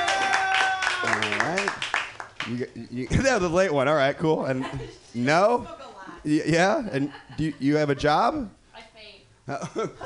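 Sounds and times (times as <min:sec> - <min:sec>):
audience applause: 0:00.0 - 0:02.6
speech: 0:02.5 - 0:08.6, 0:09.5 - 0:10.0.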